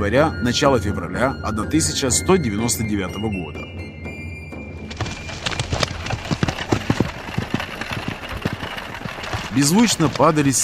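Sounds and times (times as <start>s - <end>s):
speech: 0.0s - 3.8s, 9.6s - 10.6s
horses' hooves clopping through road mud: 4.9s - 10.6s.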